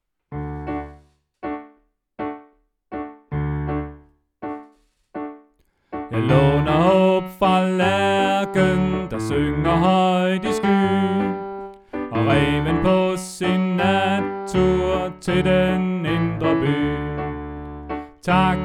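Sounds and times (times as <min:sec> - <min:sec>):
tenor singing: 0:06.1 - 0:18.6.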